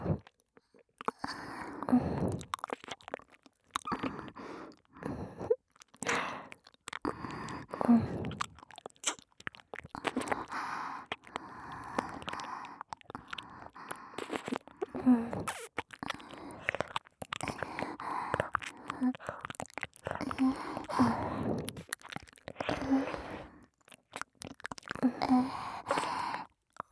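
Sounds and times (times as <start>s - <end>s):
licking both ears: 0.2s - 26.9s.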